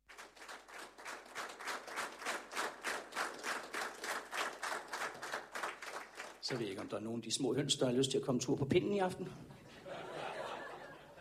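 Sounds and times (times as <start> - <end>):
live audience clapping in rhythm: 0.0 - 7.1
speech: 6.5 - 9.6
laughter: 9.7 - 11.1.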